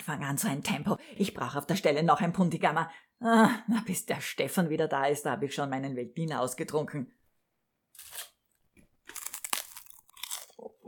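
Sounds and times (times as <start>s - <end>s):
speech: 0.1s - 7.2s
rice cakes being eaten with dry crunching: 7.9s - 8.4s, 9.0s - 10.6s.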